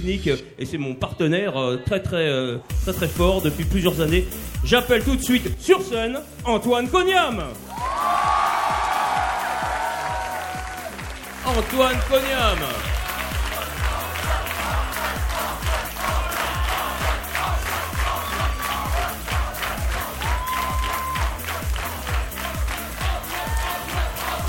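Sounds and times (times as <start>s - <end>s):
speech: 0.0s - 7.9s, 11.5s - 13.0s
large audience applause and cheering: 7.6s - 24.4s
whistles from crowd: 20.2s - 21.3s.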